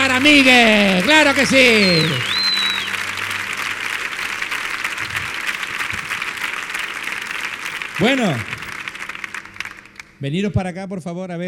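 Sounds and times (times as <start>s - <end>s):
audience applause: 0.0s - 10.3s
speech: 0.2s - 2.3s, 8.0s - 8.5s, 10.2s - 11.4s
high whistle: 1.5s - 3.4s.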